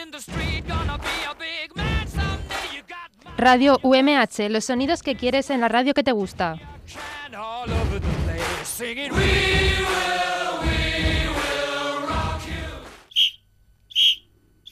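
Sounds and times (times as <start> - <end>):
loud music: 0.0 - 2.9, 6.6 - 13.0
speech: 0.2 - 0.4, 3.4 - 10.1
referee whistle signalling the end of a match: 13.1 - 14.7.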